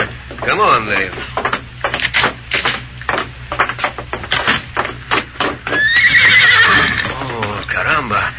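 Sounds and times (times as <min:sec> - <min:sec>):
horse hoof clops: 0:00.0 - 0:07.8
speech: 0:00.4 - 0:01.4
horse whinnying: 0:05.6 - 0:07.7.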